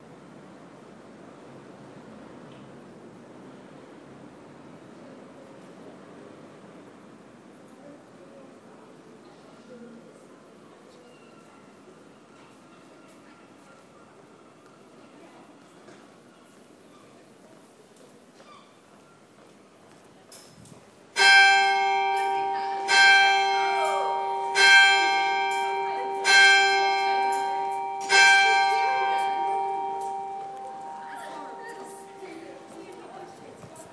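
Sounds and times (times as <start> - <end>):
loud clock ticking: 21.2 - 32.8.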